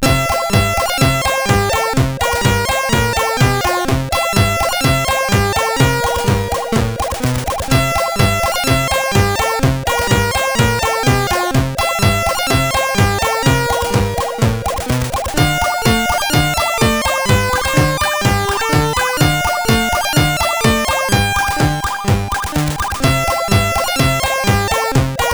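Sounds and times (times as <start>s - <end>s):
SID CSG8580R5 chip music: 0.0s - 25.3s.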